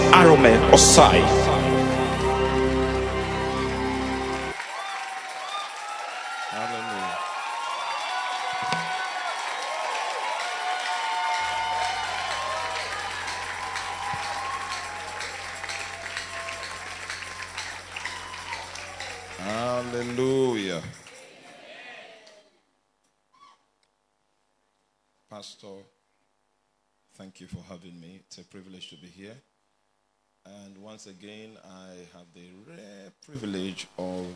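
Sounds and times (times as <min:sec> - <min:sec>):
church gathering audience applauding and cheering a speaker: 0:00.0 - 0:22.4
speech: 0:00.2 - 0:01.5, 0:27.4 - 0:29.6, 0:30.4 - 0:34.3.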